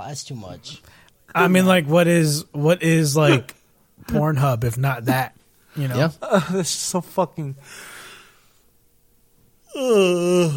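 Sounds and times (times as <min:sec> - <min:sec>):
speech: 0:00.0 - 0:08.0, 0:09.7 - 0:10.5
person yawning: 0:09.7 - 0:10.5.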